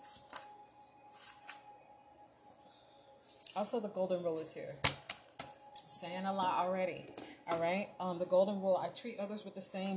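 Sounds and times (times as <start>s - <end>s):
tarot deck shuffled with cards flying out: 0.0s - 1.7s
speech: 3.6s - 5.0s, 6.0s - 9.9s.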